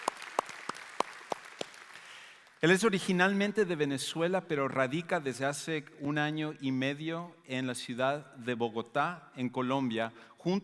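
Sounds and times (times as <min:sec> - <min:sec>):
audience applause: 0:00.0 - 0:02.6
speech: 0:02.6 - 0:10.6.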